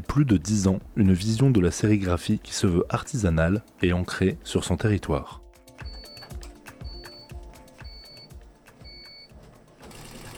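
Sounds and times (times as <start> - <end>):
speech: 0.2 - 5.4
four-head embroidery machine running: 9.4 - 10.3.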